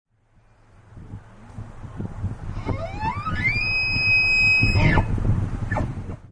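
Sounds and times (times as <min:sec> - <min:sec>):
bull elk bugling: 0:02.5 - 0:05.9.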